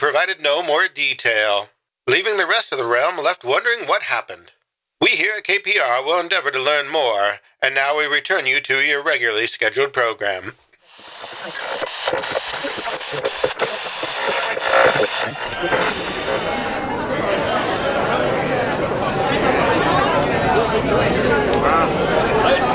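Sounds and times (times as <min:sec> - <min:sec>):
speech: 0:00.1 - 0:16.6
crowd chatter in a busy inn: 0:14.8 - 0:22.7.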